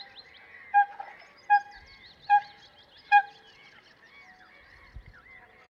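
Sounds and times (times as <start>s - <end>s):
coot calling: 0.7s - 3.4s.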